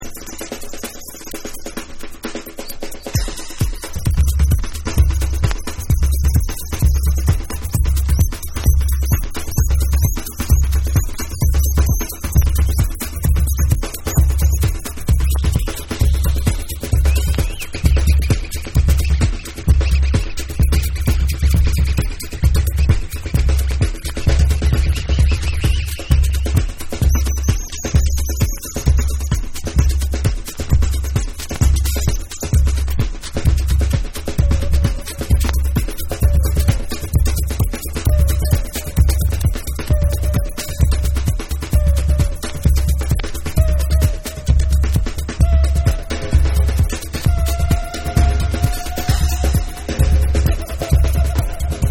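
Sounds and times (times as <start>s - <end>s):
drums: 0.0s - 51.9s.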